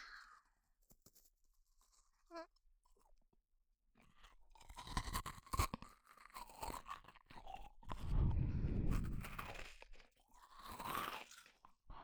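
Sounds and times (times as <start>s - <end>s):
crunching and chewing a homemade cookie: 4.0s - 8.2s, 9.0s - 11.8s.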